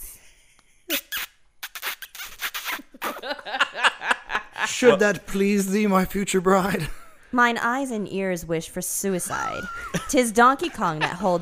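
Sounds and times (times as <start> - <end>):
voice imitating long sloppy kissing: 0.9 - 3.2
laughter: 3.0 - 5.1, 9.3 - 11.4
speech: 4.7 - 11.4.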